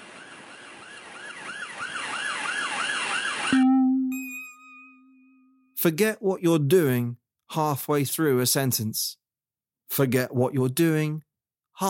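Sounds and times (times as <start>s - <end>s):
police siren wailing: 0.0s - 4.1s
steady low sustained tone: 3.6s - 5.7s
speech: 5.8s - 9.2s, 9.9s - 11.8s.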